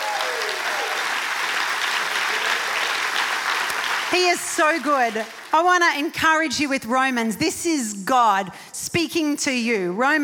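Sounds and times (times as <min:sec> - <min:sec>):
audience applauding: 0:00.0 - 0:05.6
speech: 0:04.1 - 0:10.2.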